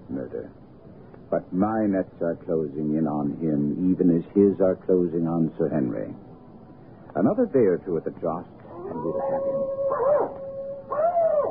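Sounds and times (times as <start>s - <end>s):
speech: 0.3s - 0.7s, 1.3s - 6.3s, 7.2s - 10.4s
hound howling: 8.7s - 11.5s.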